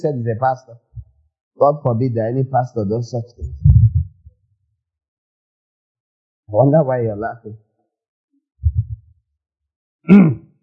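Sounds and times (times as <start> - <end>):
speech: 0.0 - 0.8, 1.6 - 3.7, 6.5 - 7.6, 10.0 - 10.4
throat clearing: 10.1 - 10.5.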